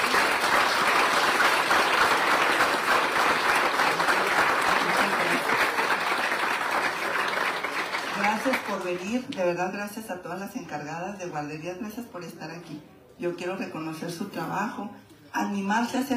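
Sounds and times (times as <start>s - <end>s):
crowd applause: 0.0s - 8.9s
speech: 8.9s - 16.1s.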